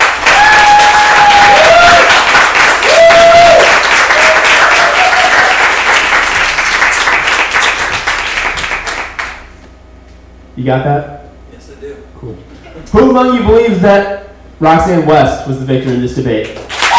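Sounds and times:
audience applause: 0.0 - 9.5, 16.6 - 16.9
speech: 10.6 - 11.2, 12.9 - 16.6.

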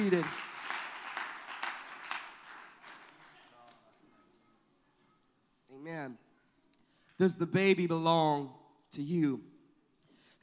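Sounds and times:
speech: 0.0 - 0.4, 7.2 - 9.5
audience clapping: 0.0 - 4.0.

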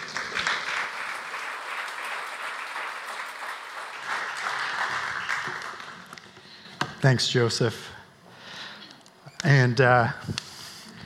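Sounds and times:
round of applause: 0.0 - 6.3
speech: 7.0 - 7.9, 9.4 - 10.4.

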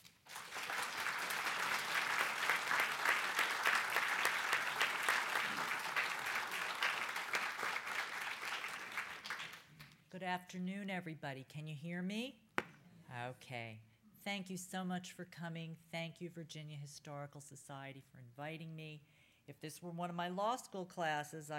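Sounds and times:
audience applause welcoming a speaker: 0.0 - 9.7
speech: 10.2 - 12.4, 13.2 - 21.5.

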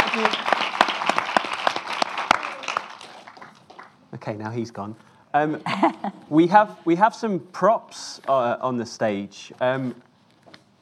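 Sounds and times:
audience applause: 0.0 - 4.0
speech: 0.2 - 0.6, 4.2 - 10.1.

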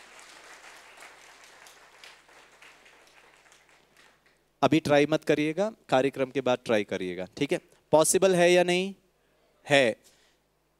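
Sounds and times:
audience clapping: 0.0 - 4.5
speech: 4.6 - 9.0, 9.6 - 10.1.

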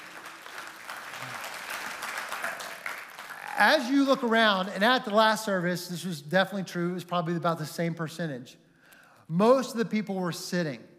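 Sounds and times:
crowd applauding: 0.0 - 5.2
speech: 3.6 - 8.6, 9.3 - 10.9.

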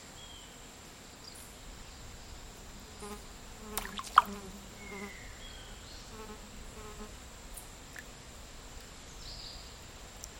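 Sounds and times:
insect drone in a dry forest in Nosara, Costa Rica: 0.0 - 10.3
faint passing buzz: 1.6 - 9.7.

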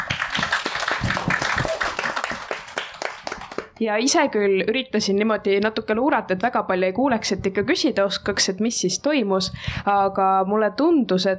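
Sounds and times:
audience applause: 0.0 - 3.8
speech: 3.8 - 11.3.

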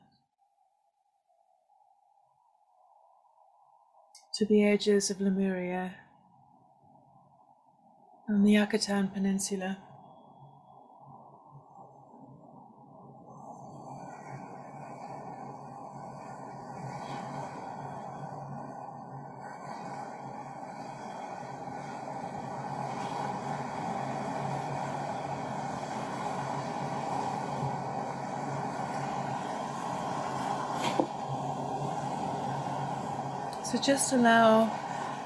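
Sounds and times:
speech: 4.4 - 6.0, 8.3 - 9.9, 33.8 - 34.9
sea waves: 12.0 - 35.2.

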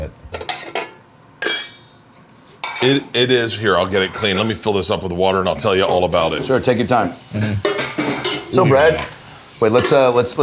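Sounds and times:
cooking pot being handled: 0.4 - 2.0, 7.6 - 10.2
speech: 2.8 - 7.7, 8.5 - 10.4.

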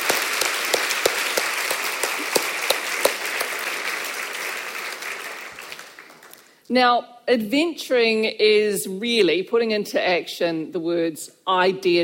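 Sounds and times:
audience applause: 0.0 - 6.5
speech: 6.7 - 12.0.

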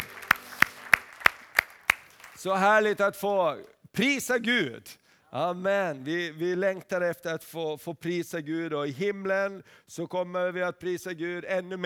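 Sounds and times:
audience applause: 0.0 - 2.9
speech: 2.4 - 11.8.

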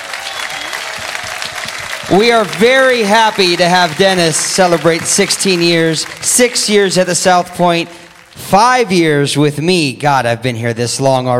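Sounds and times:
audience round of applause: 0.0 - 8.8
speech: 2.1 - 11.3.

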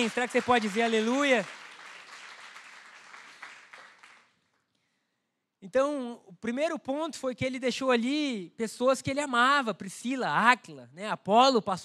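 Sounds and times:
speech: 0.0 - 1.6, 5.6 - 11.8
audience applause: 0.0 - 4.3.

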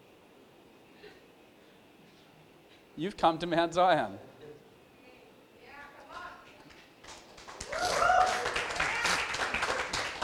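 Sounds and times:
speech: 3.0 - 4.3
church congregation clapping: 6.6 - 10.2.

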